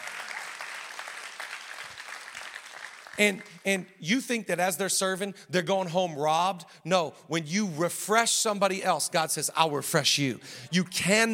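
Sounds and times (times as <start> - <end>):
crowd clapping: 0.0 - 3.7
speech: 3.2 - 11.3.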